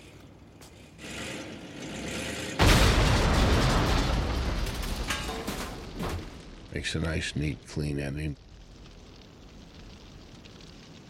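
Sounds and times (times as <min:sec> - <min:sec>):
bomb explosion: 0:02.6 - 0:07.7
speech: 0:06.8 - 0:08.4.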